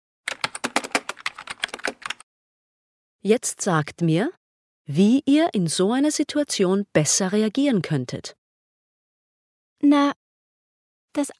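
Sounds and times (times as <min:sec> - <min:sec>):
typing on a computer keyboard: 0:00.3 - 0:02.2
speech: 0:03.2 - 0:08.4, 0:09.8 - 0:10.2, 0:11.1 - 0:11.3.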